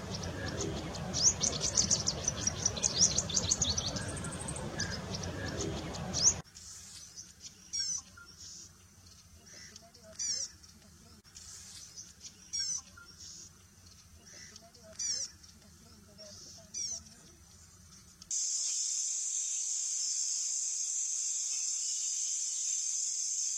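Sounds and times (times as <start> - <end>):
Paddyfield warbler song: 0.0 - 18.3.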